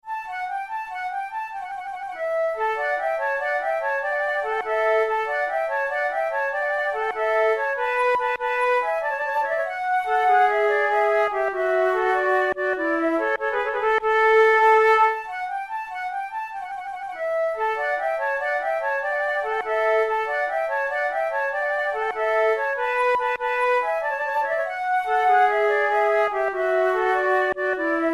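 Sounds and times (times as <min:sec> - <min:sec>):
flute playing a gigue: 0:00.0 - 0:28.1.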